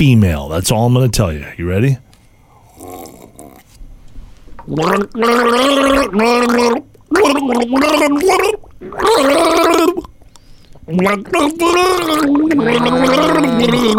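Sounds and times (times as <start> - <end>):
speech: 0.0 - 2.1, 4.7 - 10.1, 10.9 - 13.9
person gargling water while voicing the tune of an 80s song: 2.8 - 3.6, 4.7 - 10.2, 10.9 - 13.9.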